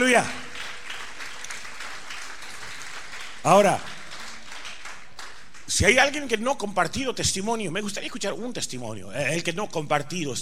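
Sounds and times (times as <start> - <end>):
audience applause: 0.0 - 5.7
speech: 0.1 - 0.4, 3.4 - 4.0, 5.7 - 10.3.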